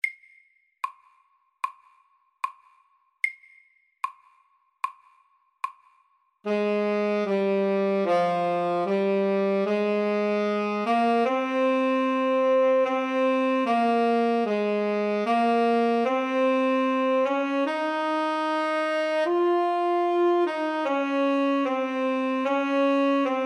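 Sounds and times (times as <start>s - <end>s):
slow etude: 6.5s - 23.4s.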